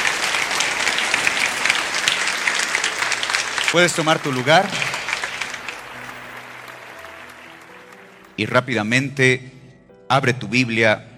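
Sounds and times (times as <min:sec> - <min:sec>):
audience applause: 0:00.0 - 0:08.5
speech: 0:03.7 - 0:05.0, 0:08.4 - 0:11.1.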